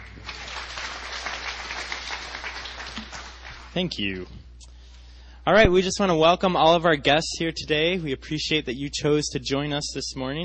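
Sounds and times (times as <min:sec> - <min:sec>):
church congregation applause: 0:00.0 - 0:03.9
speech: 0:03.7 - 0:04.4, 0:05.5 - 0:10.4.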